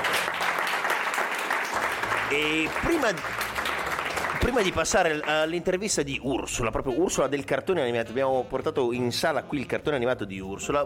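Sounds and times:
crowd applause: 0.0s - 5.2s
speech: 2.3s - 3.5s, 4.4s - 10.8s.

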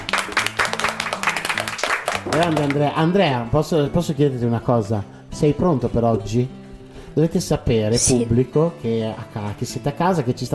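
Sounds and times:
audience applause: 0.0s - 2.8s
speech: 2.3s - 6.6s, 7.2s - 10.5s.

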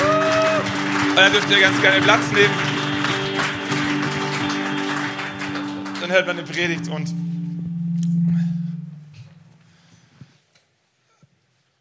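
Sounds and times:
audience applause: 0.0s - 7.2s
sustained musical tone: 0.0s - 10.2s
speech: 1.2s - 2.7s, 6.1s - 7.2s.

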